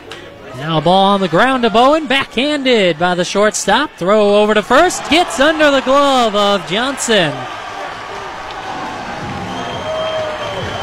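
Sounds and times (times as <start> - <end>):
baseball stadium crowd cheering: 0.4 - 10.8
speech: 0.6 - 7.6
scattered shouts and whistles: 9.2 - 10.8.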